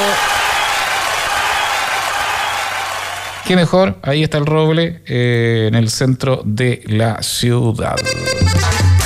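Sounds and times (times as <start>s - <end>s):
applause: 0.0s - 3.5s
speech: 3.5s - 8.9s.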